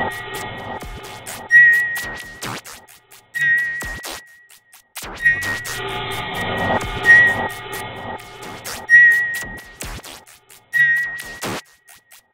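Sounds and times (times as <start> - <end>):
beeps with echoes: 0.0 - 2.3, 3.3 - 4.5, 5.2 - 9.8, 10.7 - 11.4.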